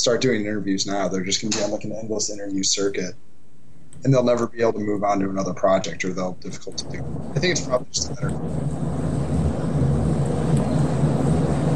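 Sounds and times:
speech: 0:00.0 - 0:03.3, 0:04.0 - 0:08.9
train rumbling: 0:04.1 - 0:11.7.

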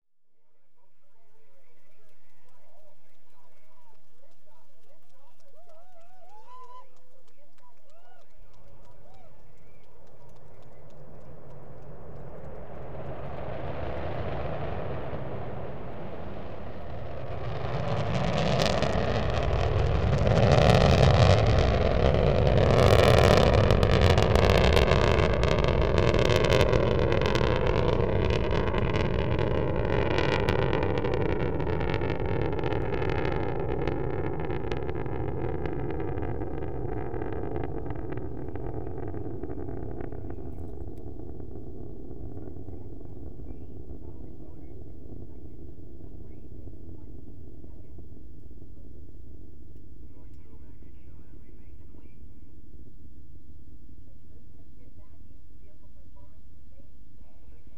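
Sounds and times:
Delta II rocket launch: 0:08.9 - 0:54.1.

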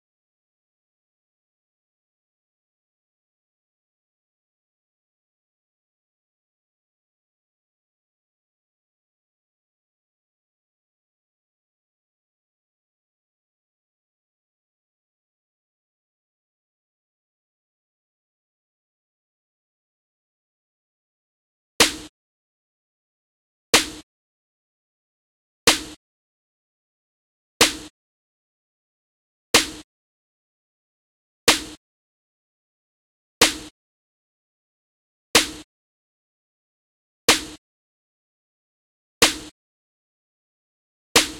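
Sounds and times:
snare noise: 0:21.8 - 0:22.1, 0:23.8 - 0:24.0, 0:25.7 - 0:26.0, 0:27.6 - 0:27.9, 0:29.6 - 0:29.8, 0:31.5 - 0:31.8, 0:33.4 - 0:33.7, 0:35.4 - 0:35.6, 0:37.3 - 0:37.6, 0:39.2 - 0:39.5, 0:41.2 - 0:41.3.

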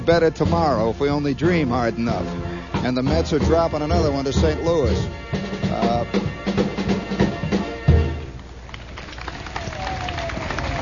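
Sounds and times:
speech: 0:00.0 - 0:06.4
deep rhythmic thumps: 0:00.0 - 0:08.4
crowd applause: 0:08.4 - 0:10.8.

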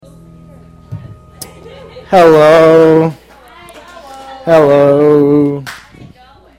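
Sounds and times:
speech: 0:02.0 - 0:03.2, 0:04.5 - 0:05.8
single hand clap: 0:05.6 - 0:06.0.

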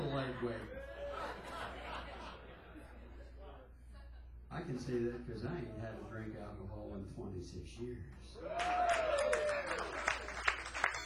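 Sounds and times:
laughter: 0:00.0 - 0:04.8
speech: 0:00.4 - 0:00.9, 0:04.7 - 0:09.6
applause: 0:08.5 - 0:11.0.

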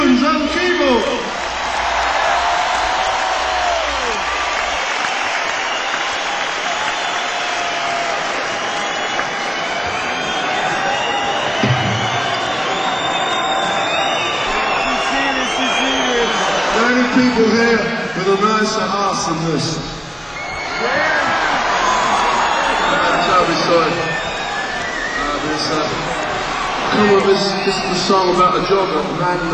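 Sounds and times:
audience applause and cheering: 0:00.0 - 0:29.5
speech: 0:18.7 - 0:19.8, 0:27.6 - 0:29.5.

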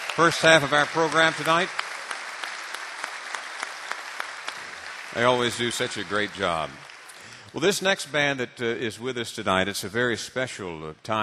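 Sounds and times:
audience applause at the Ryman Auditorium in Nashville during a bluegrass concert: 0:00.0 - 0:07.8
speech: 0:00.2 - 0:01.8, 0:05.2 - 0:06.9, 0:07.5 - 0:11.2.

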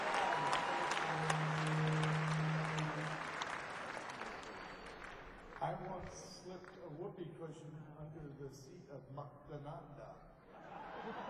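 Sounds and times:
audience applause: 0:00.0 - 0:07.0
speech: 0:06.0 - 0:11.2
laughter: 0:10.5 - 0:11.2.

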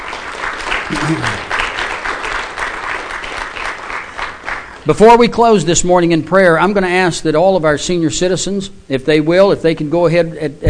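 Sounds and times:
audience applause: 0:00.0 - 0:04.8
speech: 0:00.9 - 0:01.4, 0:04.8 - 0:10.6.

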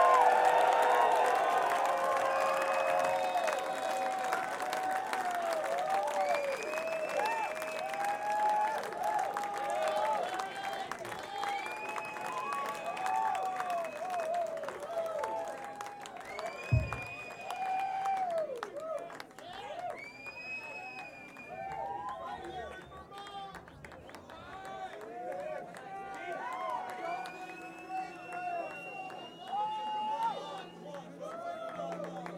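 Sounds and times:
high whoops and shouts: 0:00.0 - 0:10.7, 0:11.3 - 0:20.8, 0:21.4 - 0:22.6, 0:25.9 - 0:32.3
concert crowd applauding and cheering: 0:00.0 - 0:32.3
low thump: 0:16.7 - 0:17.2.

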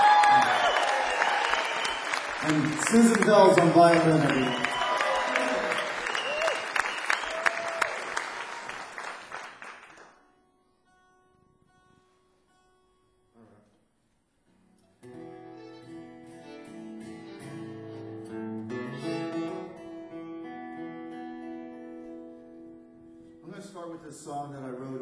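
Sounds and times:
cheers: 0:00.0 - 0:09.3
audience applause at a live concert: 0:00.0 - 0:10.2
speech: 0:02.4 - 0:04.7.

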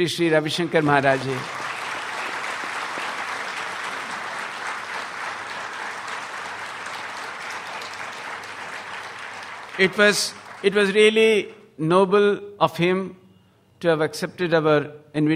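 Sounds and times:
speech: 0:00.0 - 0:01.6, 0:09.8 - 0:13.2, 0:13.8 - 0:15.3
audience applause: 0:00.0 - 0:11.2.

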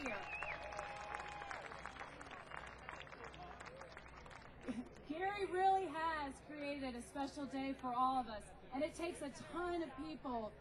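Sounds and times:
audience applause: 0:00.0 - 0:05.0
speech: 0:04.7 - 0:10.5.

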